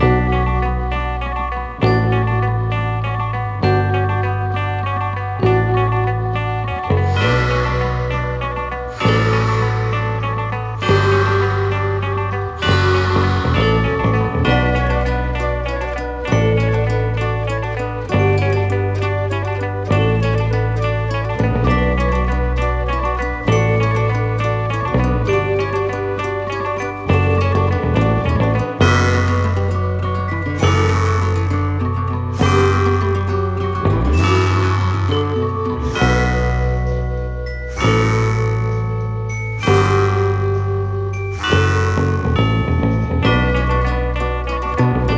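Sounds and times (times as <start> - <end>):
Christmas bells: 0.0 - 45.1.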